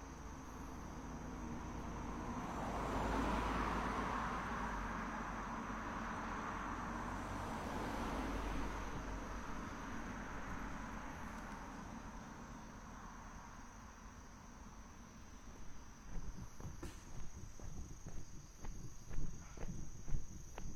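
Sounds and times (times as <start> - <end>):
thin constant high whine: 0.0 - 20.7
traffic passing: 0.0 - 20.7
steady rushing hum: 14.8 - 20.7
footstep-like taps and knocks: 15.5 - 20.7.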